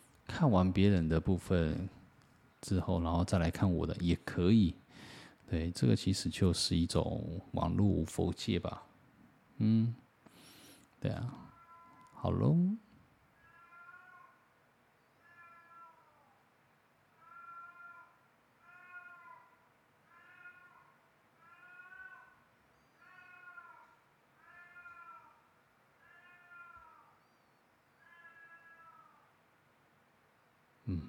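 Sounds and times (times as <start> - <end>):
speech: 0.4 - 2.0, 2.6 - 8.9, 9.6 - 10.0, 11.0 - 11.4, 12.2 - 12.8
cat meowing: 11.4 - 12.3, 13.4 - 14.5, 15.2 - 16.4, 17.2 - 27.2, 28.0 - 29.3.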